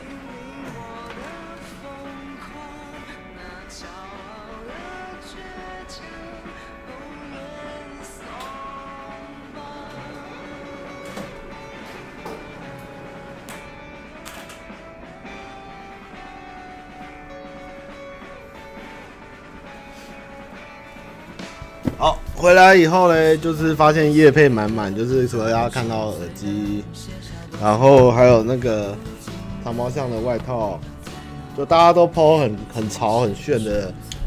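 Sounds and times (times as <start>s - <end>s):
electric fan running: 6.1s - 22.8s
speech: 22.0s - 29.1s, 29.7s - 30.9s, 31.6s - 34.1s.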